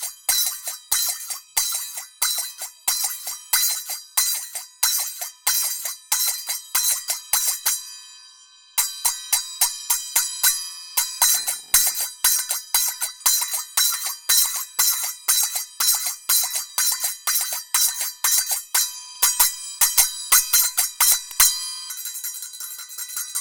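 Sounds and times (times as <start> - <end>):
taal percussion loop of bihu: 0.0 - 7.9, 8.8 - 21.6.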